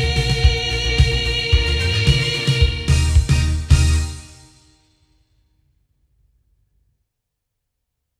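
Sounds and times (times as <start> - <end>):
loudspeakers: 0.0 - 4.3.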